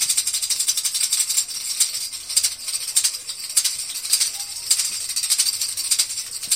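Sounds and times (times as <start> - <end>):
rattles shaking: 0.0 - 6.5.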